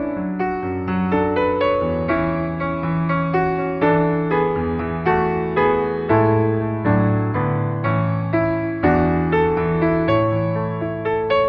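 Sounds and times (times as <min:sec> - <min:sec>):
piano: 0:00.0 - 0:11.4.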